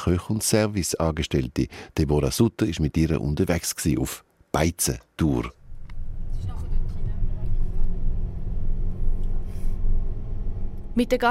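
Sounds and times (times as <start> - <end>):
speech: 0.0 - 5.6, 11.0 - 11.2
black Mini engine rumble and road noise driving across the canton of Aargau: 5.5 - 11.2.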